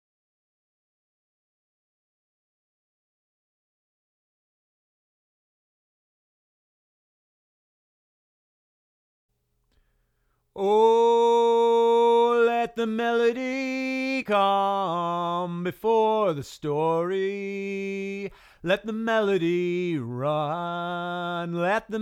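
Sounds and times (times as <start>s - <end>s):
person singing lead vocal: 10.6s - 22.0s.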